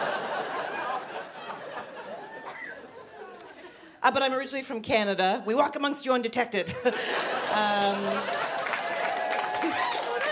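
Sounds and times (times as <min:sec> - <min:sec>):
laughter: 0:00.0 - 0:03.9, 0:06.7 - 0:10.3
speech: 0:04.0 - 0:08.5
audience clapping: 0:07.0 - 0:10.3.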